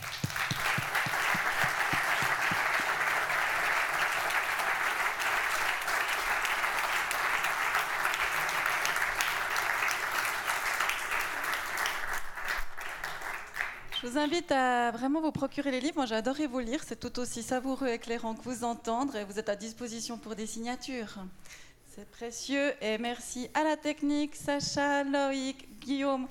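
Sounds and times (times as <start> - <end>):
audience applause: 0.0 - 14.0
speech: 14.0 - 26.2.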